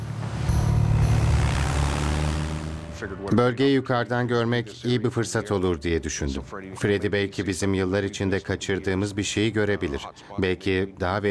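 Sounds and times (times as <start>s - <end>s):
small propeller plane engine droning before takeoff: 0.0s - 3.3s
speech: 3.0s - 11.2s.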